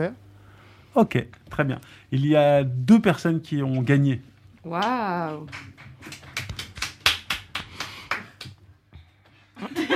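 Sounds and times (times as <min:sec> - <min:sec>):
speech: 0:00.0 - 0:00.2, 0:01.0 - 0:06.2
two people clapping: 0:04.8 - 0:08.7.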